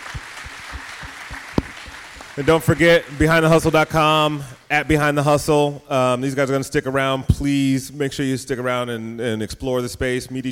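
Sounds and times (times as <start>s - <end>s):
audience applause: 0.0s - 4.0s
speech: 2.4s - 10.5s.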